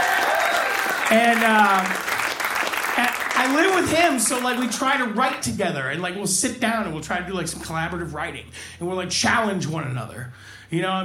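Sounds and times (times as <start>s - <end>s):
audience applause: 0.0s - 5.0s
speech: 1.1s - 2.1s, 3.0s - 11.0s.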